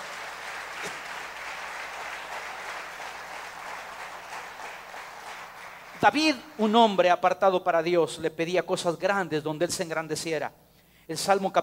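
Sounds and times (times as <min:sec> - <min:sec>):
audience applause: 0:00.0 - 0:06.0
speech: 0:06.0 - 0:11.6.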